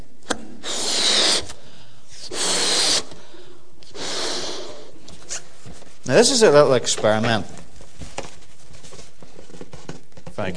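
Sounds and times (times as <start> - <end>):
person blowing up a balloon: 0.3 - 5.6
speech: 6.1 - 7.6, 10.4 - 10.5.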